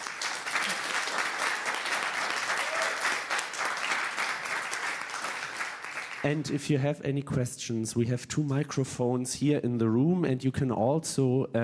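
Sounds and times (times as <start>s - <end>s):
audience applause: 0.0s - 6.5s
speech: 6.2s - 11.6s.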